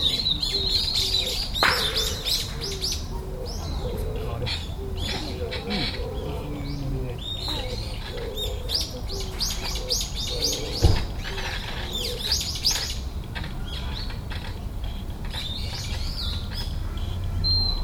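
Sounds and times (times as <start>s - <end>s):
birds chirping and twittering: 0.0s - 17.8s.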